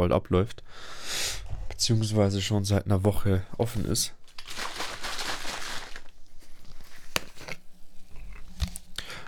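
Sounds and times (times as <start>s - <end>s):
speech: 0.0s - 4.6s
plastic orange juice bottle crinkling: 4.2s - 9.2s.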